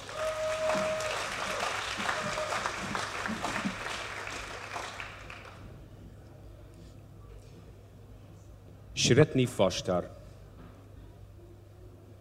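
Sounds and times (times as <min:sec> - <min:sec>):
audience applause: 0:00.0 - 0:05.7
speech: 0:09.0 - 0:10.2.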